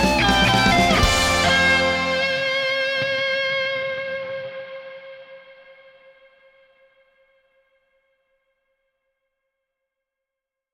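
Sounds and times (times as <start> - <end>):
Big Muff fuzz guitar: 0.0 - 7.8.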